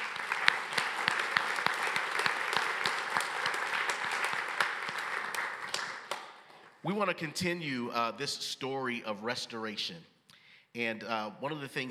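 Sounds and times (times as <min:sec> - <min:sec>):
audience round of applause: 0:00.0 - 0:06.3
speech: 0:06.9 - 0:10.1, 0:10.8 - 0:11.8.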